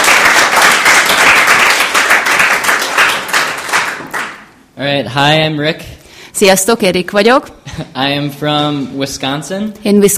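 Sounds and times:
applause: 0:00.0 - 0:04.5
speech: 0:04.8 - 0:10.1.

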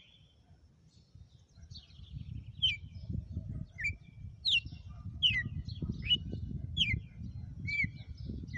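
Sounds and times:
female red-cowled cardinal whistled song: 0:02.5 - 0:03.0, 0:03.7 - 0:08.5.

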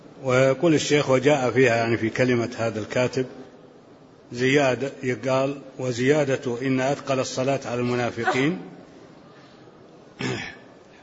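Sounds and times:
speech: 0:00.2 - 0:03.5, 0:04.3 - 0:08.8
sneeze during a religious lesson: 0:10.2 - 0:10.7.

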